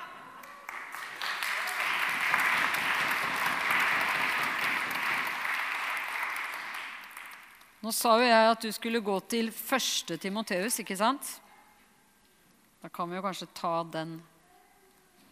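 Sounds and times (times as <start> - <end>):
audience applause: 0.0 - 7.6
speech: 7.8 - 11.4, 12.8 - 14.3.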